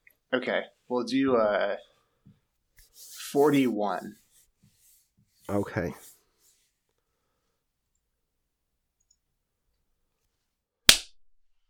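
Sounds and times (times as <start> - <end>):
speech: 0.3 - 1.9, 3.0 - 4.2, 5.5 - 6.1
hand clap: 10.9 - 11.2.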